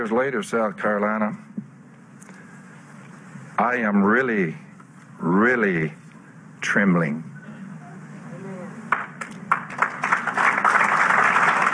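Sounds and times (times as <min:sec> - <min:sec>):
speech: 0:00.0 - 0:01.5, 0:03.6 - 0:04.6, 0:05.2 - 0:06.0, 0:06.6 - 0:07.3
audience applause: 0:08.9 - 0:11.7.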